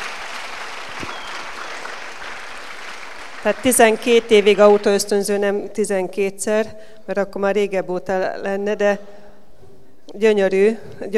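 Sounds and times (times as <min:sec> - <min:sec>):
audience applause: 0:00.0 - 0:05.2
speech: 0:03.4 - 0:09.2, 0:10.1 - 0:11.1.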